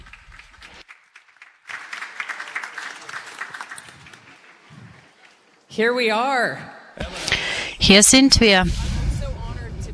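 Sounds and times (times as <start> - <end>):
audience applause welcoming a speaker: 0.0 - 5.2
speech: 5.8 - 8.9.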